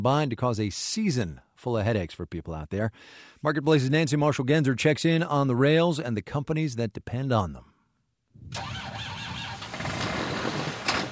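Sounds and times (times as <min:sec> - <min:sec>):
speech: 0:00.0 - 0:07.7, 0:08.4 - 0:08.8
farm tractor engine cranking in cold weather: 0:08.5 - 0:11.1.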